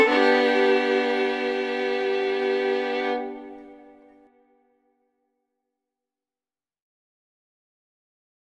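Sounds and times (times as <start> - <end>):
fiddle: 0.0 - 4.4.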